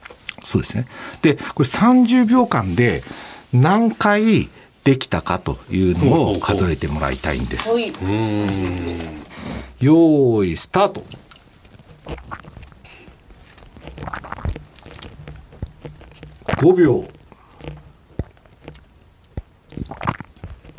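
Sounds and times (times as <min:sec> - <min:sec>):
speech: 0:00.5 - 0:11.2, 0:16.6 - 0:17.2
soft mouth noises: 0:07.8 - 0:09.8, 0:11.1 - 0:20.7
person swallowing saliva: 0:08.0 - 0:09.8, 0:11.7 - 0:20.7.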